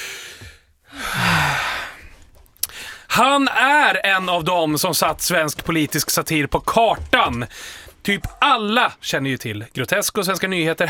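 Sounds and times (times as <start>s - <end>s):
deep breath drawn in before speaking: 0.0s - 3.1s, 7.5s - 8.0s
speech: 3.2s - 10.8s.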